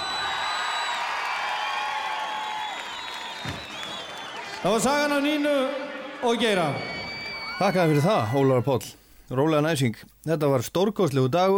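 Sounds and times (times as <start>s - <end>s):
audience applause: 0.0s - 8.6s
speech: 4.6s - 6.9s, 7.6s - 11.5s.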